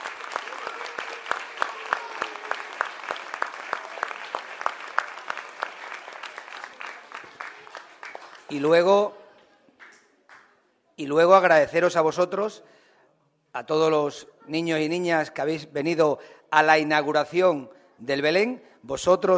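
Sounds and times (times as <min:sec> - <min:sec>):
audience applause: 0:00.0 - 0:08.9
speech: 0:08.5 - 0:09.2, 0:11.0 - 0:12.8, 0:13.5 - 0:19.3.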